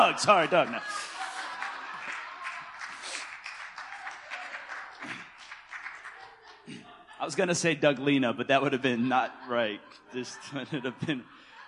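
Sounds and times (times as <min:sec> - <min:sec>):
laughter: 0:00.0 - 0:03.2, 0:04.4 - 0:11.6
crowd applause: 0:00.0 - 0:06.9
speech: 0:00.1 - 0:01.2, 0:07.2 - 0:11.4.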